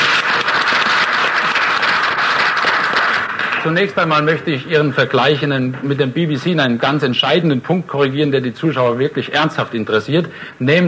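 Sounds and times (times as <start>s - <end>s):
audience applauding: 0.0s - 6.1s
speech: 3.6s - 10.8s.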